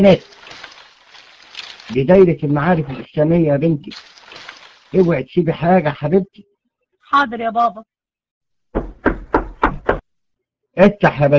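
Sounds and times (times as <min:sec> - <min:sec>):
speech: 0:00.0 - 0:00.3, 0:01.9 - 0:06.5, 0:07.1 - 0:07.9, 0:10.8 - 0:11.3
knocking on a door: 0:08.8 - 0:10.0.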